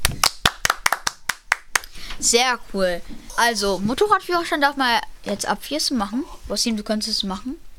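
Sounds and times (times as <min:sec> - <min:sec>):
applause, hands clapping: 0:00.0 - 0:01.9
speech: 0:02.2 - 0:07.6.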